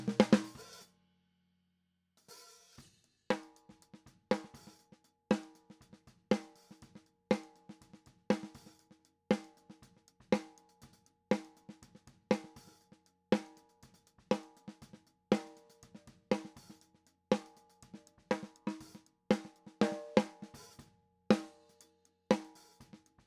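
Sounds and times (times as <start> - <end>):
snare drum top: 0.0 - 0.8, 2.4 - 5.7, 8.3 - 9.8, 14.3 - 21.6, 22.3 - 23.2.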